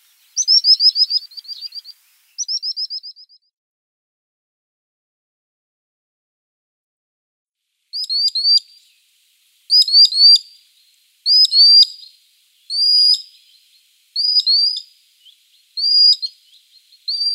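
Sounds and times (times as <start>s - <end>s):
common sandpiper whistled calls: 0.0s - 3.4s, 8.0s - 9.0s, 9.7s - 17.3s.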